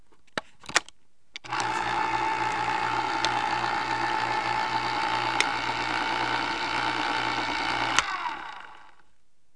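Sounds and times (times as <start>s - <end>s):
electric can opener: 1.4s - 9.1s.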